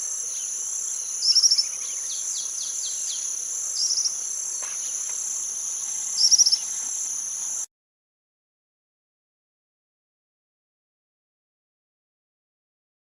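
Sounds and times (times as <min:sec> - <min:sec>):
suiriri cinzento singing: 0:00.0 - 0:07.6.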